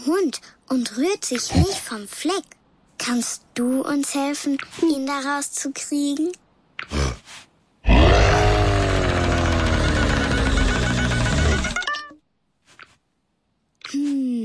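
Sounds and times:
speech: 0:00.1 - 0:07.0
lion roaring: 0:07.8 - 0:11.8.

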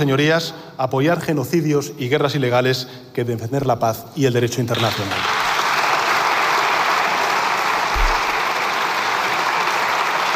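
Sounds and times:
speech: 0:00.0 - 0:05.4
applause from Socialist parliament benches: 0:04.8 - 0:10.3.

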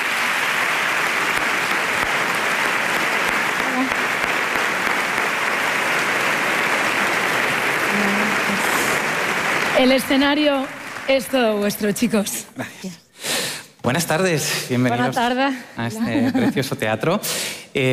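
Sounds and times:
audience applause: 0:00.0 - 0:12.2
speech: 0:09.8 - 0:13.0, 0:13.8 - 0:17.9
laughter: 0:16.0 - 0:16.8.

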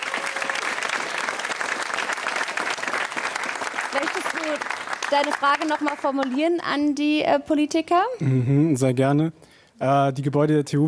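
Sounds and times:
audience applause: 0:00.0 - 0:06.5
speech: 0:03.9 - 0:10.8.

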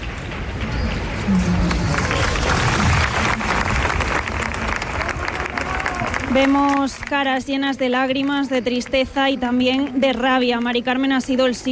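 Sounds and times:
large crowd applause after minute of silence: 0:00.0 - 0:07.2
speech: 0:01.3 - 0:01.5, 0:06.4 - 0:11.6.

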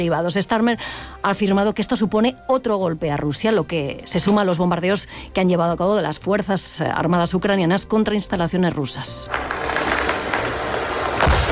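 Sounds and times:
speech: 0:00.0 - 0:09.9
drones during attack: 0:09.3 - 0:11.5.

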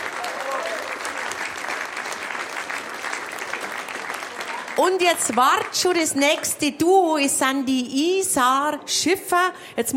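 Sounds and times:
crowd applause: 0:00.0 - 0:05.8
speech: 0:04.8 - 0:09.9.

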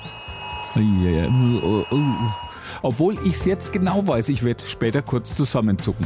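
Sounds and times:
mobile phone emergency alert tone: 0:00.0 - 0:02.7
speech: 0:00.8 - 0:06.0.

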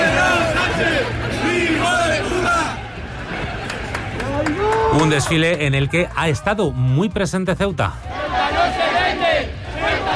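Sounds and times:
crowd shouting insults at a parade: 0:00.0 - 0:05.1, 0:08.0 - 0:10.1
speech: 0:05.2 - 0:08.8.

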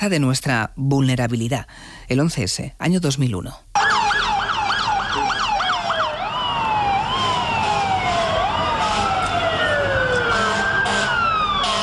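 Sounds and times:
speech: 0:00.0 - 0:03.7
alarm siren wailing: 0:03.8 - 0:11.8.

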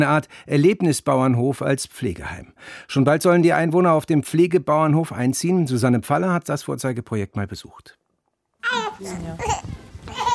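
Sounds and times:
speech: 0:00.0 - 0:08.0, 0:08.6 - 0:09.8
baby babbling in a former ox stable converted into a care farm: 0:08.6 - 0:10.3.

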